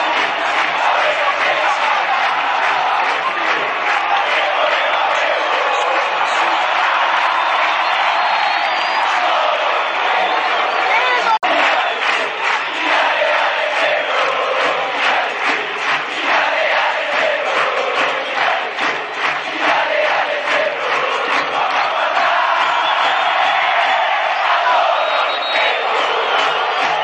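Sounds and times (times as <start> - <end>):
crowd chanting: 0.0 - 27.0.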